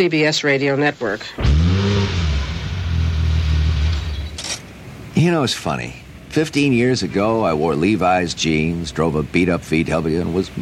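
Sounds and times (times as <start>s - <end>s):
speech: 0.0s - 2.2s, 5.2s - 10.6s
Porsche car engine revving: 1.4s - 4.5s.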